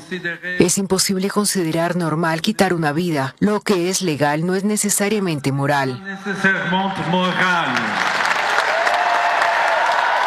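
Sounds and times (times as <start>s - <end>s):
speech: 0.1s - 8.2s
crowd cheering: 6.7s - 10.2s.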